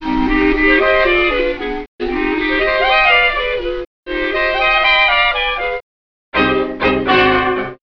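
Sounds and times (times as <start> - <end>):
flute: 0.0 - 5.8, 6.4 - 7.8.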